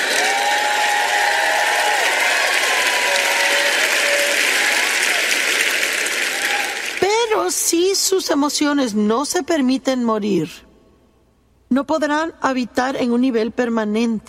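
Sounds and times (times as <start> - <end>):
audience applauding loudly: 0.0 - 7.4
speech: 8.0 - 10.7, 11.8 - 14.2.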